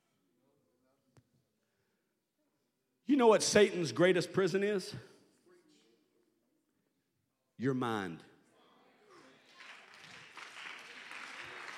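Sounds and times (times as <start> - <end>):
speech: 3.1 - 5.1, 7.6 - 8.3
audience applause: 9.3 - 11.7.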